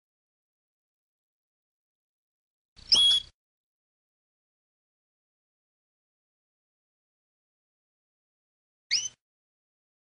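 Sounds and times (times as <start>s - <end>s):
canary singing: 2.8s - 3.4s, 8.9s - 9.2s.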